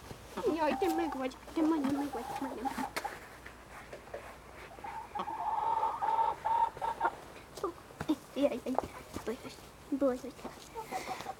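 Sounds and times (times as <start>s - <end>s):
chickens clucking: 0.3s - 7.9s, 10.1s - 11.3s.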